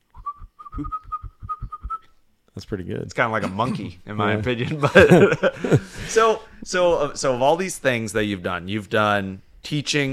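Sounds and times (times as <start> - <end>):
person whistling while breathing in: 0.2 - 2.1
speech: 0.8 - 1.0, 2.6 - 10.1
laughter: 4.4 - 6.3.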